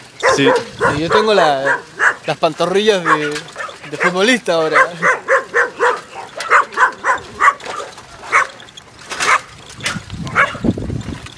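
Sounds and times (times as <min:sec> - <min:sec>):
dogs barking: 0:00.0 - 0:10.7
speech: 0:00.4 - 0:05.2.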